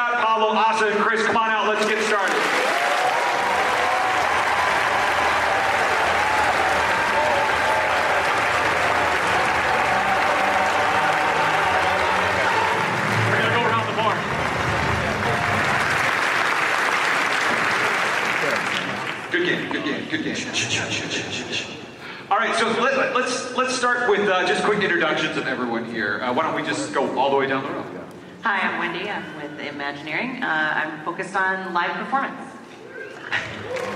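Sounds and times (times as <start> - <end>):
speech: 0.3 - 3.8, 19.4 - 21.7, 22.4 - 32.5
round of applause: 1.8 - 19.4, 33.0 - 33.9.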